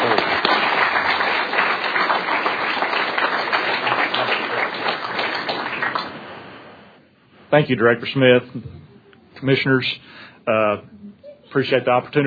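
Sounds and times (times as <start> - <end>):
audience applause welcoming an award presenter at a Texas fisheries meeting: 0.0 - 6.5
speech: 7.5 - 8.8, 9.4 - 12.2.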